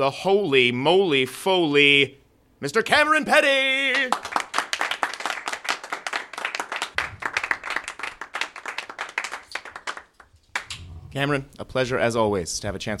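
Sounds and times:
speech: 0.0s - 4.2s, 11.2s - 12.9s
crowd applauding: 3.9s - 10.8s.

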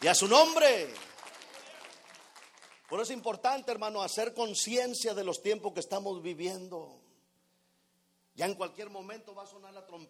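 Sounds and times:
speech: 0.0s - 1.2s, 2.9s - 7.1s, 8.4s - 10.0s
audience applause: 0.9s - 2.9s.

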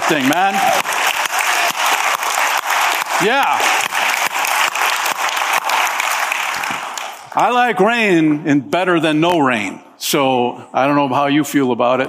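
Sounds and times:
audience clapping: 0.0s - 8.4s
speech: 0.1s - 1.0s, 3.2s - 3.8s, 7.4s - 12.0s.

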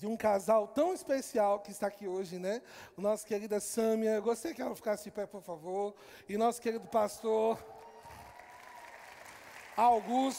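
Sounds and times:
speech: 0.0s - 7.8s, 9.8s - 10.3s
audience applause: 7.0s - 10.3s.

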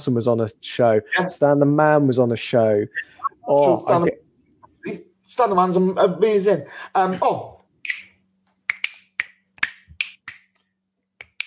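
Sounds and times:
speech: 0.0s - 4.2s, 4.8s - 7.6s
finger clicking: 7.8s - 10.6s, 11.2s - 11.4s.

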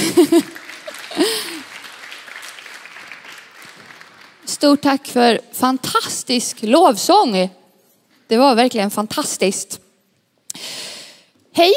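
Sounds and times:
audience applauding: 0.0s - 4.6s
speech: 0.2s - 0.6s, 4.6s - 7.6s, 8.3s - 9.8s, 11.6s - 11.7s.

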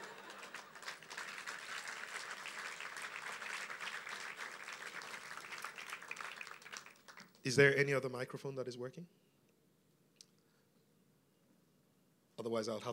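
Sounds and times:
applause: 0.0s - 7.4s
speech: 7.4s - 9.2s, 12.5s - 12.9s.

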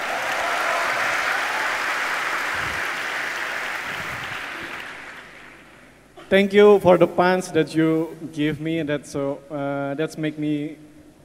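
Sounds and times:
crowd clapping: 0.0s - 5.9s
speech: 6.3s - 10.9s.

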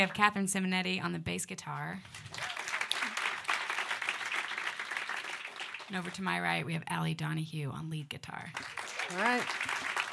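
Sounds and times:
speech: 0.0s - 2.6s, 5.9s - 9.8s
audience applause: 2.1s - 6.2s, 8.6s - 10.1s.

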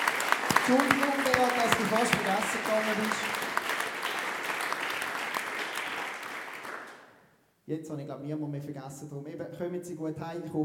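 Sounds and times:
audience applause: 0.0s - 7.0s
speech: 0.7s - 3.4s, 7.7s - 10.6s.

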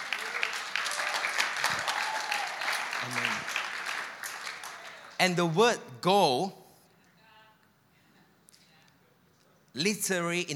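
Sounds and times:
audience clapping: 0.0s - 5.6s
speech: 5.2s - 6.6s, 9.8s - 10.5s.

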